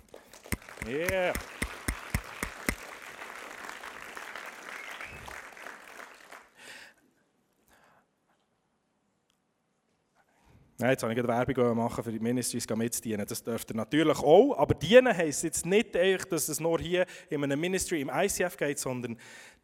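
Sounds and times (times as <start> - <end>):
audience applause: 0.0 - 6.8
speech: 0.8 - 1.6, 10.8 - 19.6.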